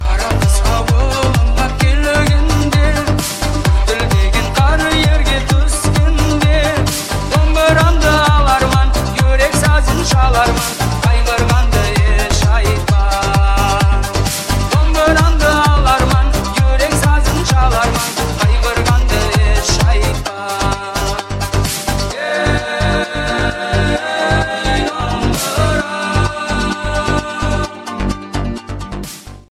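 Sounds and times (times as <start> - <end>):
dombra remix music: 0.0 - 29.5.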